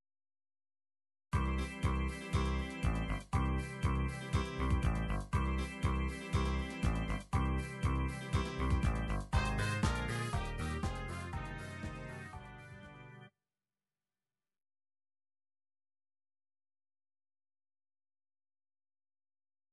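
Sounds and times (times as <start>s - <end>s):
disco music: 1.4s - 13.2s.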